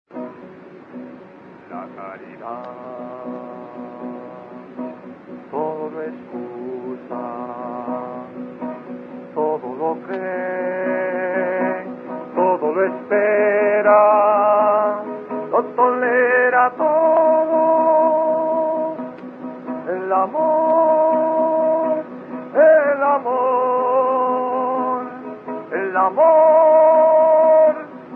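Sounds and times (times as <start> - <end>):
Neocatechumenal Way hymn: 1.7 - 28.1.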